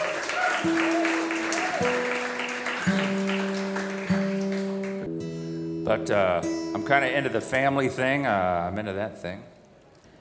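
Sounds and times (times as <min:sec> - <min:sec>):
audience applause: 0:00.0 - 0:05.1
speech: 0:00.6 - 0:00.9, 0:05.9 - 0:09.5.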